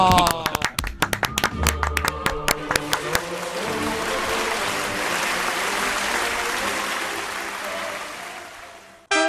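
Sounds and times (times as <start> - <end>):
audience applause: 0.0 - 9.1.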